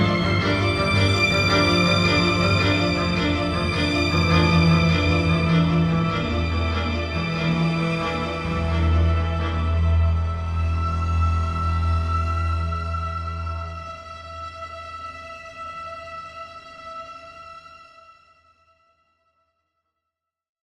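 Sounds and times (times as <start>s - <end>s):
orchestral devilish jig: 0.0s - 13.1s.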